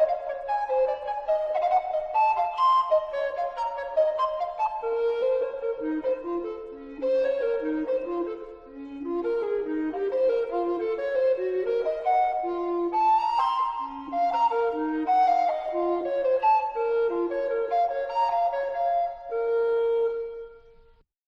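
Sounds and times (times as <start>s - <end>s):
voice flute: 0.0s - 21.0s.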